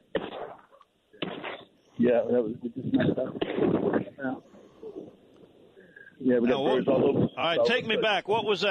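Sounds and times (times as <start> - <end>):
gunshots while duck hunting: 0.1 - 1.6
speech: 2.0 - 4.5, 6.2 - 8.6.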